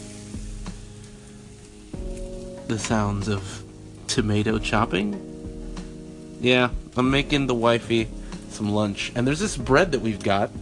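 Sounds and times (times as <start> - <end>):
eggs frying in a pan: 0.0 - 10.5
speech: 2.7 - 3.6, 4.2 - 5.3, 6.4 - 10.5.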